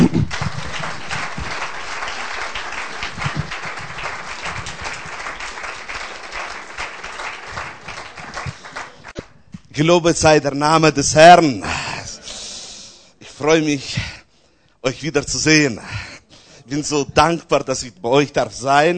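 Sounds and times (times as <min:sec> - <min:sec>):
audience applause: 0:00.0 - 0:09.2
speech: 0:09.8 - 0:11.8, 0:13.5 - 0:14.1, 0:14.8 - 0:16.0, 0:16.7 - 0:18.9.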